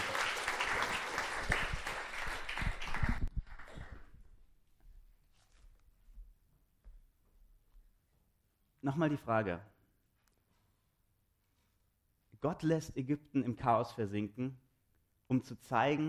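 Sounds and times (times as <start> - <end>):
audience applause: 0.0 - 4.1
speech: 8.8 - 9.8, 12.4 - 14.6, 15.3 - 16.0.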